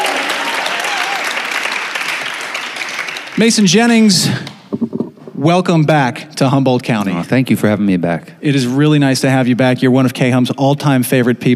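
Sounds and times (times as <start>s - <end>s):
whoops and cheers: 0.0s - 1.5s
live audience applauding: 0.0s - 4.4s
speech: 3.4s - 4.6s, 5.4s - 11.5s.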